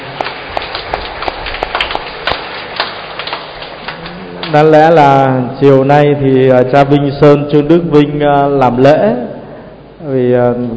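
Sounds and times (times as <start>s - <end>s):
applause: 0.0s - 4.6s
speech: 4.5s - 9.3s, 10.0s - 10.7s.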